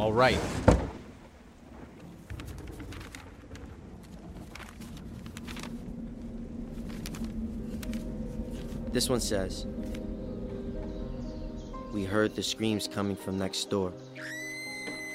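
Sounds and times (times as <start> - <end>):
speech: 0.0 - 0.6, 8.9 - 9.8, 11.9 - 14.4
heavy rain outside: 0.7 - 12.4.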